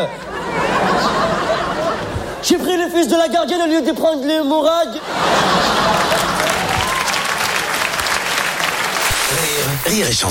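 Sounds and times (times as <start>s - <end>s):
speech: 0.0s - 0.3s, 2.4s - 6.3s, 9.3s - 10.3s
laughter: 0.0s - 2.7s, 4.9s - 7.9s
audience applause: 5.2s - 10.1s.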